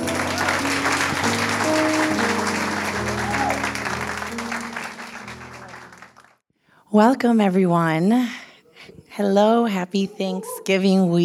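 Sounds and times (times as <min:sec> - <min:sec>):
sustained musical tones: 0:00.0 - 0:06.3
audience applause for a resident yoga teacher: 0:00.0 - 0:06.4
speech: 0:07.0 - 0:08.4, 0:09.2 - 0:11.2.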